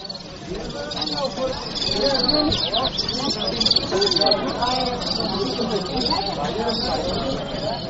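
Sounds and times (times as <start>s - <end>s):
golsar white-collared mountain songbird calling: 0.0s - 7.8s.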